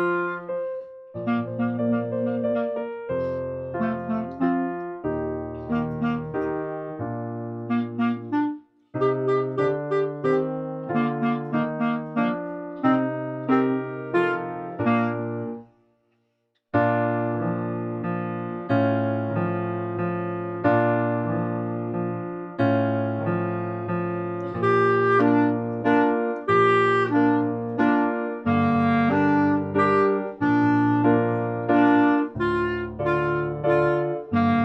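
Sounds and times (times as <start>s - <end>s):
slowed clarinet dance melody: 0.0s - 15.8s, 16.8s - 34.6s.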